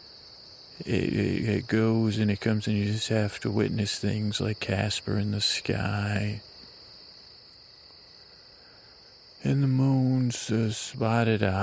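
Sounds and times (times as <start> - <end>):
night insects chirping outdoors: 0.0 - 11.6
speech: 0.8 - 6.5, 9.4 - 11.6.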